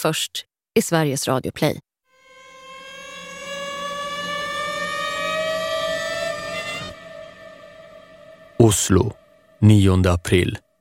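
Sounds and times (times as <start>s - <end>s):
speech: 0.0s - 1.9s, 8.6s - 10.7s
air raid siren wailing: 2.1s - 10.0s.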